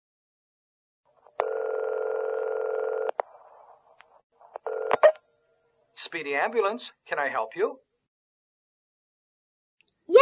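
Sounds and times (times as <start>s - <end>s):
telephone dial tone: 1.4s - 3.2s, 4.6s - 5.2s
phone clicks: 4.8s - 5.2s
speech: 6.1s - 7.9s.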